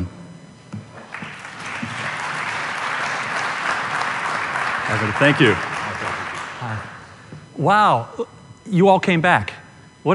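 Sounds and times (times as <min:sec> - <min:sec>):
audience applause: 0:01.0 - 0:07.1
speech: 0:04.9 - 0:05.7, 0:07.6 - 0:10.1.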